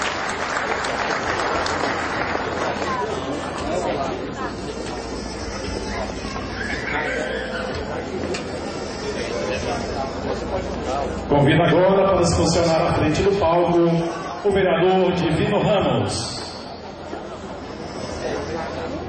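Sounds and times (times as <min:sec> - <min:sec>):
sustained audience applause: 0:00.0 - 0:03.8
murmur of crowd voices: 0:00.0 - 0:19.0
speech: 0:11.4 - 0:16.4.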